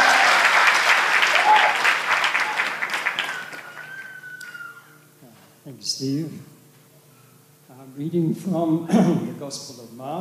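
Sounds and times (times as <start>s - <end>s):
audience applause: 0.0s - 4.9s
speech: 5.8s - 6.5s, 7.9s - 10.1s.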